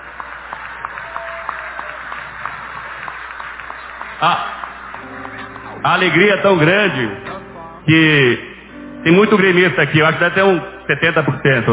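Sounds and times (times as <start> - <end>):
audience applause: 0.0 - 6.5
speech: 4.2 - 4.6, 5.8 - 7.3, 7.9 - 11.7.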